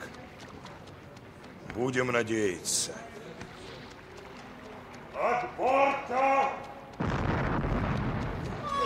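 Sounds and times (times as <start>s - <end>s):
speech: 1.8s - 3.2s, 5.2s - 6.7s
cannon fired over a river to raise a drowned body: 7.0s - 8.7s.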